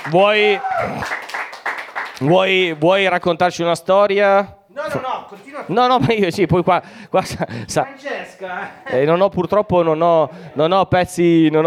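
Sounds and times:
speech: 0.0s - 1.2s, 2.2s - 5.0s, 5.6s - 11.6s
audience applause: 0.0s - 2.8s.

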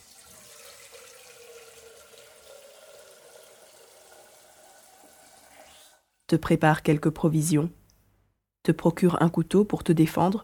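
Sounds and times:
water pouring into a flask: 0.0s - 6.1s
speech: 6.3s - 7.8s, 8.7s - 10.4s.

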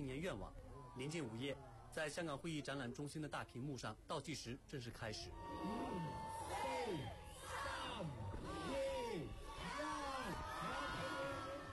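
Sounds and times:
speech: 0.0s - 5.7s
huge crowd cheering at the 2018 New Year countdown at Victoria Harbour, Hong Kong: 5.3s - 11.7s.

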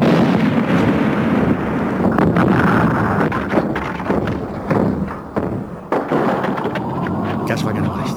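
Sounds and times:
charge detonated in the snow exploding: 0.0s - 7.2s
falling debris cracks and thuds: 0.0s - 7.6s.

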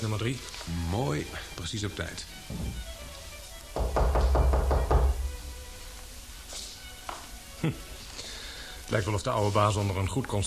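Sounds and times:
speech: 0.0s - 3.0s, 7.6s - 7.9s, 8.9s - 10.4s
rapid knocking on the door of a flat: 2.5s - 2.8s, 3.7s - 5.5s.

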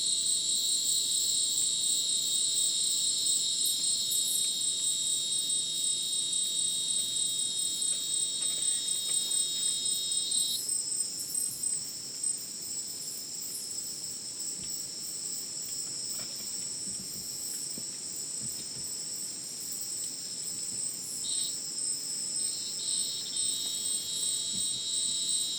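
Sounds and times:
crickets shrill chorus: 0.2s - 11.3s, 21.0s - 25.5s.

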